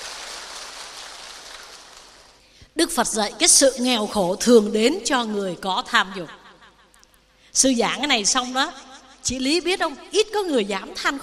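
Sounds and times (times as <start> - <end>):
audience applause: 0.0 - 2.4
speech: 2.8 - 6.4, 7.6 - 11.2.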